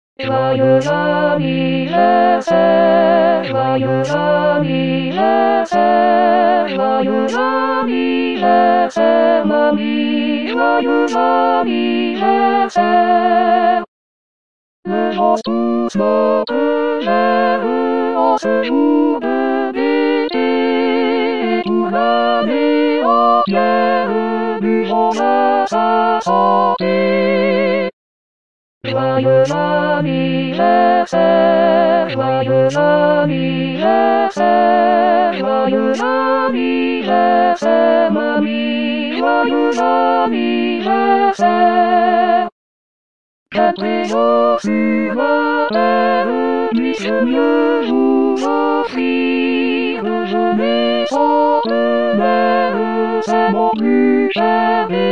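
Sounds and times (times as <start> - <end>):
choir singing: 0.2 - 13.9, 14.9 - 27.9, 28.8 - 42.5, 43.5 - 55.1.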